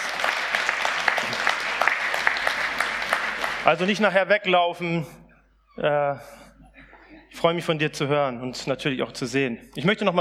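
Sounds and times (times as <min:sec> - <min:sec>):
audience applause: 0:00.0 - 0:04.1
speech: 0:03.7 - 0:05.2, 0:05.8 - 0:06.4, 0:07.4 - 0:10.2.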